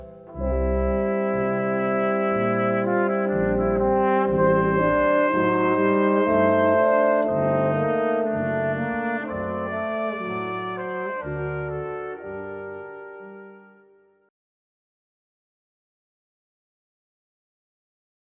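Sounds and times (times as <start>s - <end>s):
brass quintet playing: 0.0s - 14.3s.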